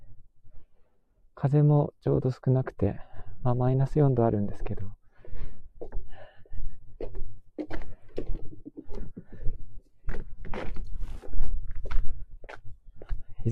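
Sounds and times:
speech: 1.4 - 5.0
footsteps on an outdoor walk in sunny calm weather at minus four degrees: 4.4 - 13.5.

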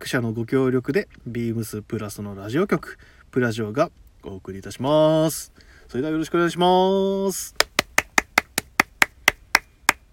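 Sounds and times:
speech: 0.0 - 7.6
one person clapping alone: 7.6 - 10.0.

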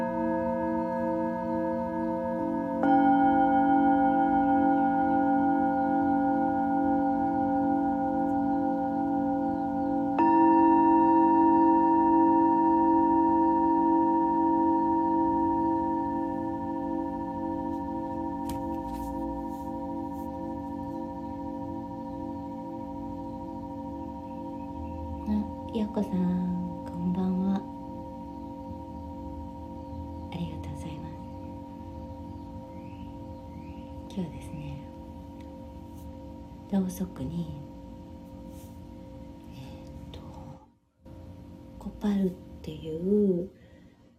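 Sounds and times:
singing bowls ringing for sound healing: 0.0 - 44.1
steady low hum: 0.0 - 44.1.

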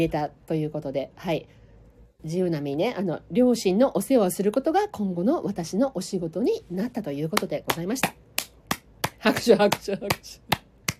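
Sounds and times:
speech: 0.0 - 1.6, 2.2 - 8.2, 9.2 - 10.6
hand clapping: 7.4 - 10.9.

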